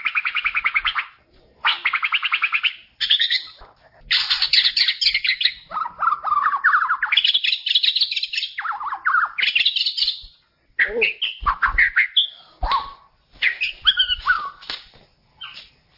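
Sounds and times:
white-rumped shama singing high chirps and swooping whistled notes: 0.0 - 14.7, 15.4 - 15.7.

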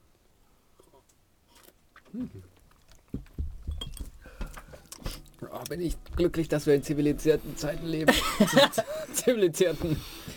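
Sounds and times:
speech: 2.1 - 3.3, 5.4 - 10.3
glasses clinking in a toast: 3.8 - 4.1
laughter: 8.0 - 9.3.

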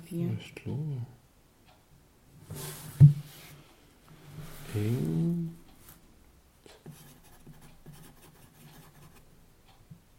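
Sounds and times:
faint low hum: 0.0 - 10.1
speech: 0.1 - 1.2, 4.8 - 5.3
pen scratching across paper writing a note: 6.9 - 9.2.

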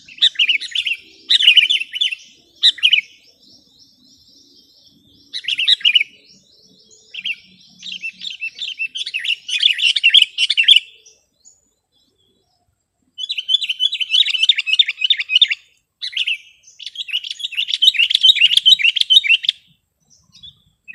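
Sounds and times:
sooty-headed bulbul song: 0.0 - 20.9.

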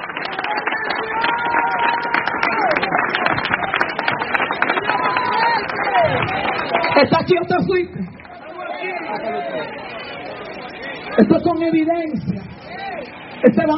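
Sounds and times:
audience applauding: 0.0 - 10.0
voices calling out and cheering: 0.0 - 13.7
speech: 7.0 - 8.1, 11.2 - 12.4, 13.5 - 13.7.

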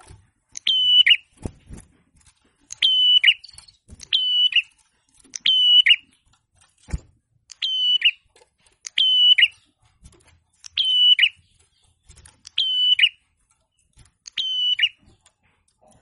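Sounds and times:
prinia song of high flat whistles with burry endings: 0.6 - 1.4, 2.7 - 4.8, 5.4 - 6.2, 7.5 - 9.8, 10.6 - 15.2.

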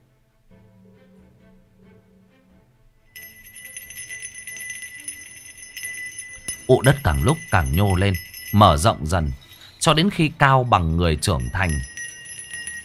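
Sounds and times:
bells and coins jingling on shaking bamboo poles: 3.1 - 12.8
speech: 6.7 - 11.9.

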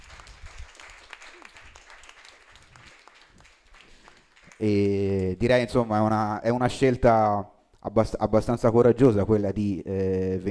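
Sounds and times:
scattered clapping from a small audience for a poet at a book presentation: 0.0 - 5.6
speech: 4.6 - 10.4.

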